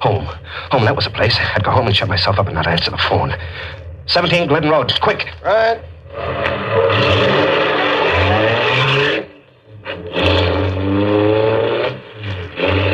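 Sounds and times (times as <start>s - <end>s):
speech: 0.2s - 7.3s
car engine revving and pulling away: 3.3s - 12.9s.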